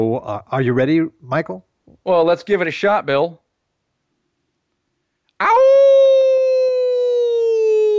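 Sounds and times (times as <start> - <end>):
speech: 0.0 - 3.4
person imitating an old dog howl: 5.4 - 7.9.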